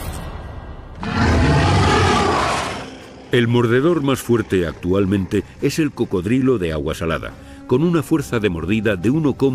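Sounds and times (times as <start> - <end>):
dinosaur roar: 1.0 - 3.1
speech: 3.3 - 9.5.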